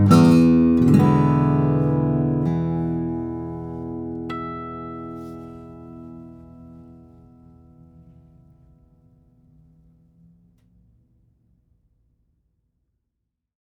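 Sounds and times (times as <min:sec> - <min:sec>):
steel string flattop guitars: 0:00.0 - 0:08.7.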